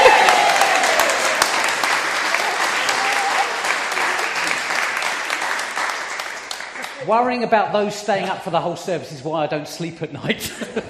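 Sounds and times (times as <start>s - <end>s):
audience cheering and applauding: 0.0s - 7.2s
speech: 7.1s - 10.8s.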